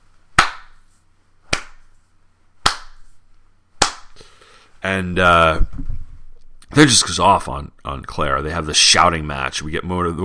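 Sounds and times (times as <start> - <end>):
sarcastic slow clap: 0.4 - 0.9, 1.5 - 2.0, 2.6 - 3.2, 3.8 - 4.3
speech: 4.8 - 5.8, 6.7 - 10.2.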